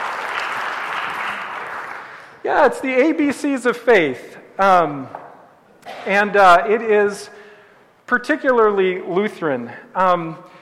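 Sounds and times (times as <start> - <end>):
audience applause: 0.0 - 2.4
speech: 2.4 - 5.2, 6.0 - 7.4, 8.1 - 10.5.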